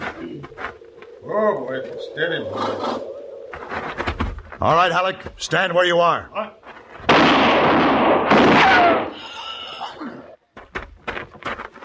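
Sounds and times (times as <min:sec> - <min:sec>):
speech: 0:01.4 - 0:03.7, 0:04.6 - 0:06.6
gunshot in a radio drama: 0:07.1 - 0:09.2.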